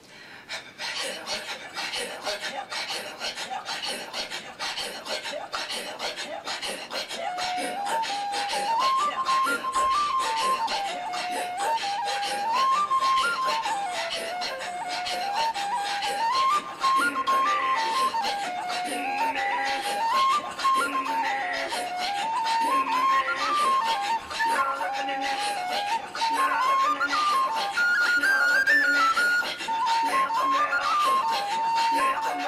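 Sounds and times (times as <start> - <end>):
Inuit throat singing: 1.0 - 32.4
reel played on the penny whistle: 7.5 - 32.4.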